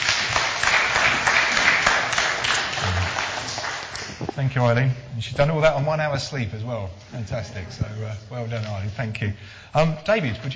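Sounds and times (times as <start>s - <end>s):
audience applause: 0.0s - 4.3s
speech: 4.4s - 10.5s.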